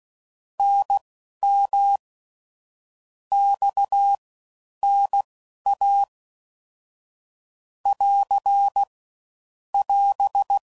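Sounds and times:
CW Morse code groups at 5 WPM: 0:00.6 - 0:02.0, 0:03.4 - 0:04.2, 0:04.8 - 0:06.1, 0:07.9 - 0:08.9, 0:09.8 - 0:10.6.

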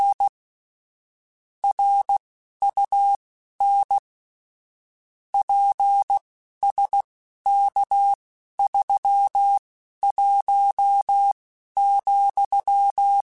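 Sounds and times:
Morse code radio QSOs: 0:01.6 - 0:04.0, 0:05.4 - 0:13.2.

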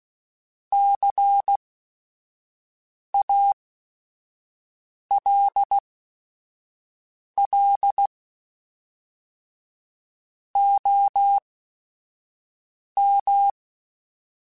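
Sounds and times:
Morse code radio QSOs: 0:00.8 - 0:01.6, 0:05.2 - 0:05.8, 0:07.4 - 0:08.1, 0:10.6 - 0:11.4, 0:13.0 - 0:13.6.

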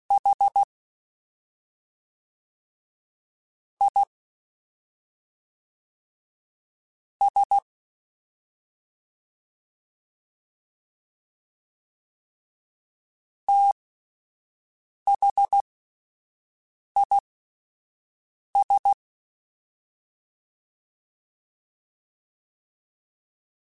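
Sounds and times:
fast CW Morse code groups: 0:00.1 - 0:00.7, 0:07.2 - 0:07.6, 0:13.5 - 0:13.8, 0:15.1 - 0:15.6, 0:18.6 - 0:19.0.

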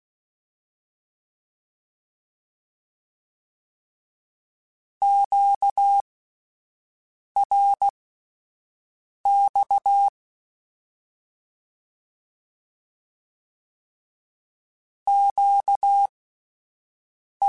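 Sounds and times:
Morse code Q calls in CW code groups: 0:05.0 - 0:06.0, 0:07.4 - 0:07.9, 0:09.3 - 0:10.1, 0:15.1 - 0:16.1.

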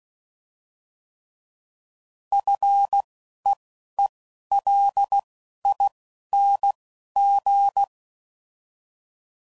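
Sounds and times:
morse code beeps at 10 WPM: 0:02.4 - 0:07.9.

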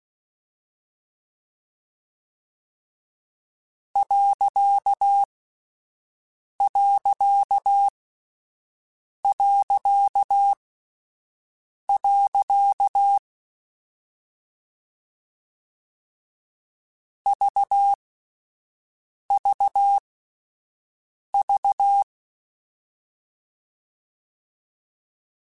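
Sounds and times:
Morse code CW code groups: 0:04.0 - 0:05.3, 0:06.6 - 0:07.9, 0:09.3 - 0:10.6, 0:12.0 - 0:13.2, 0:17.3 - 0:18.0, 0:19.4 - 0:20.0, 0:21.4 - 0:22.1.

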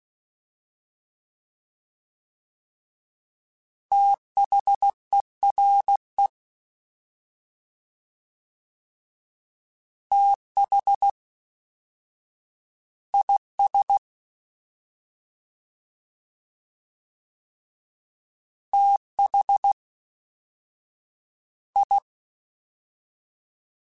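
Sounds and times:
fast CW Morse code groups: 0:03.9 - 0:06.3, 0:10.1 - 0:11.2, 0:13.2 - 0:14.0, 0:18.8 - 0:19.8, 0:21.8 - 0:22.0.

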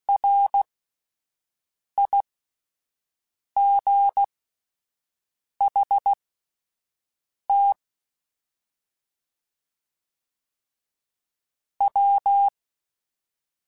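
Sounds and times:
Morse code beeps: 0:00.2 - 0:00.6, 0:02.0 - 0:02.2, 0:03.6 - 0:04.3, 0:05.7 - 0:06.2, 0:07.5 - 0:07.8, 0:11.8 - 0:12.6.

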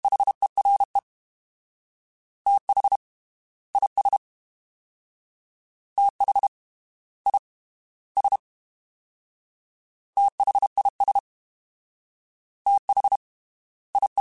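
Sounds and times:
fast CW Morse code groups: 0:00.0 - 0:01.0, 0:02.5 - 0:03.0, 0:03.8 - 0:04.2, 0:06.0 - 0:06.5, 0:08.2 - 0:08.4, 0:10.2 - 0:11.2, 0:12.7 - 0:13.2, 0:14.0 - 0:14.1.

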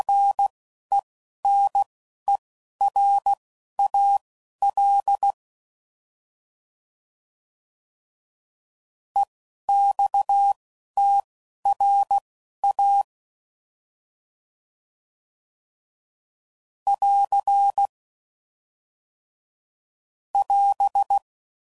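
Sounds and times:
CW Morse code groups at 10 WPM: 0:00.1 - 0:05.4, 0:09.2 - 0:13.1, 0:16.9 - 0:17.9, 0:20.4 - 0:21.2.

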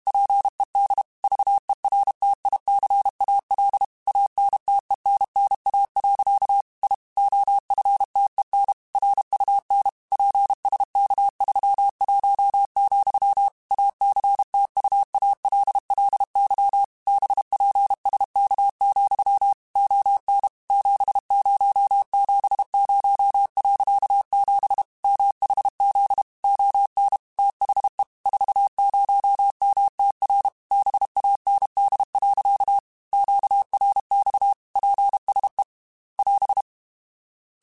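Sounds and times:
Morse code CW code groups on ham radio: 0:00.1 - 0:35.6, 0:36.2 - 0:36.6.

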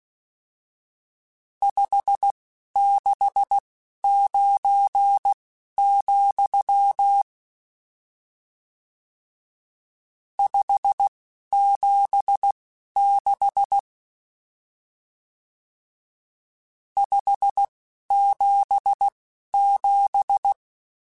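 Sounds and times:
Morse code CW code groups: 0:01.6 - 0:07.2, 0:10.4 - 0:13.8, 0:17.0 - 0:20.6.

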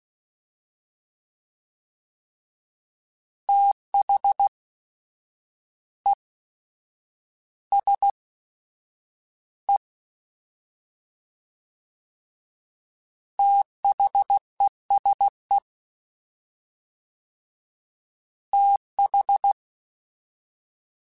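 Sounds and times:
fast CW Morse code groups: 0:03.5 - 0:04.5, 0:07.7 - 0:08.1, 0:13.4 - 0:15.3, 0:18.6 - 0:19.6.

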